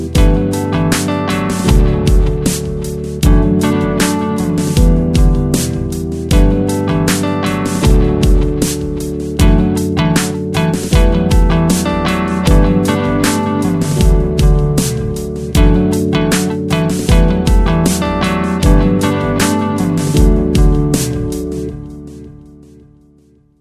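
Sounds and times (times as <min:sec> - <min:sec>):
guitars: 0:00.0 - 0:23.3.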